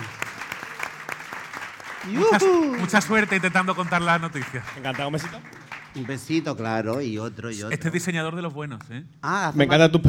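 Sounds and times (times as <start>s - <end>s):
audience applause: 0.0s - 6.6s
person whooping: 2.0s - 3.0s
speech: 2.0s - 10.0s.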